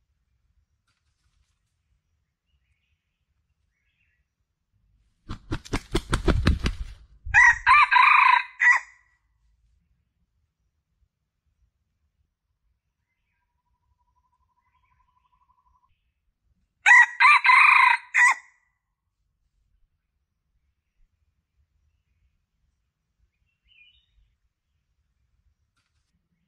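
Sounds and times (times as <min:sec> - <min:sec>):
Red junglefowl crowing: 0:07.3 - 0:09.0, 0:16.8 - 0:18.5.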